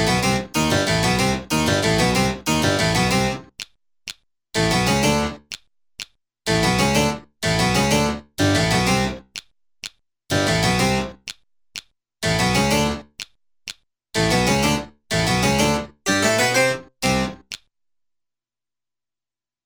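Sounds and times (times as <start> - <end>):
harpsichord song: 0.0 - 3.4, 4.6 - 5.4, 6.5 - 9.2, 10.3 - 11.1, 12.2 - 13.0, 14.2 - 17.4.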